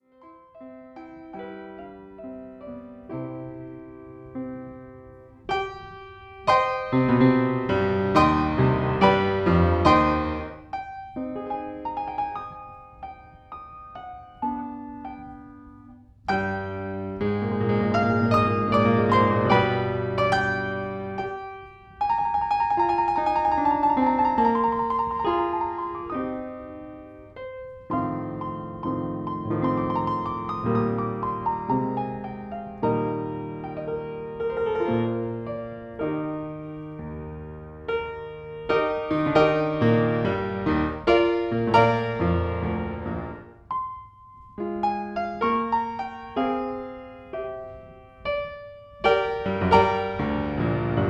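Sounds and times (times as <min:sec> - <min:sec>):
piano concerto in E-flat major: 0:00.0 - 0:51.0.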